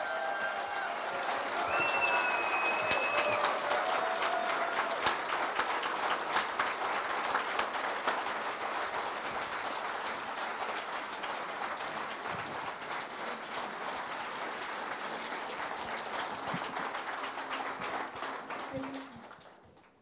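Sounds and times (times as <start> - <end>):
large audience applause: 0.0 - 20.0
whistles: 1.6 - 3.4.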